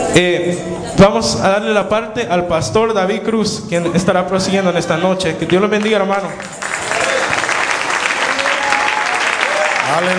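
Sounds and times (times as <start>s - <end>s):
speech: 0.2s - 6.8s, 9.9s - 10.1s
audience applauding: 5.5s - 10.1s.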